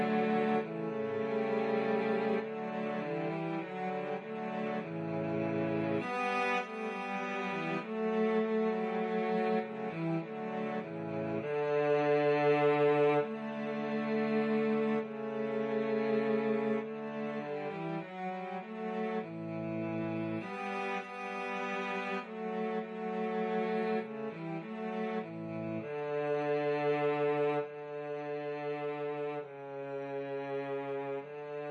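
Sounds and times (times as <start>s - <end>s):
cello trio playing: 0.0s - 31.6s.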